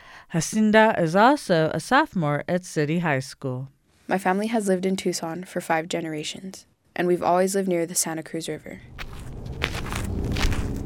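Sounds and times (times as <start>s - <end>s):
speech: 0.3s - 9.6s
footsteps walking through dry riverbed of the Santa Cruz River in Tucson: 8.9s - 10.8s.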